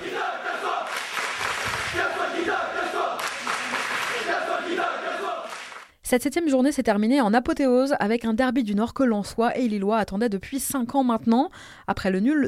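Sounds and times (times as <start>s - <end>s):
football supporters chanting outside stadium: 0.0s - 5.9s
speech: 6.1s - 12.4s.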